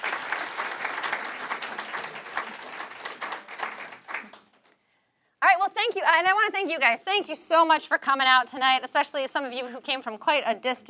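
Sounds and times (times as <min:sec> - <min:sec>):
audience applause in a bookshop: 0:00.0 - 0:04.6
speech: 0:05.9 - 0:10.8.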